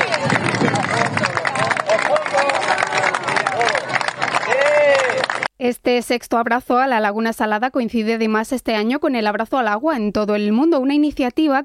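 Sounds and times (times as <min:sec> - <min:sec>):
crowd applauding loudly outdoors: 0:00.0 - 0:05.5
speech: 0:05.9 - 0:11.6.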